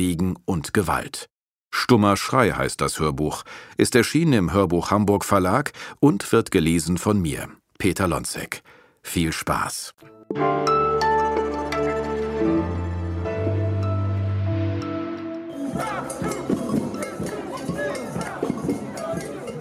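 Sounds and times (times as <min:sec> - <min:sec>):
speech: 0:00.0 - 0:11.2
sustained musical tones: 0:10.2 - 0:19.5
anti-nuclear protest crowd clamor: 0:15.5 - 0:19.5
sharp shouts: 0:15.6 - 0:19.5.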